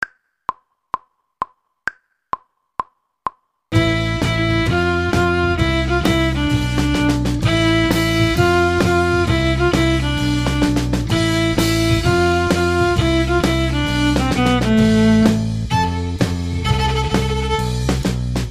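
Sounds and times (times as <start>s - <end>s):
violin: 3.7s - 18.5s.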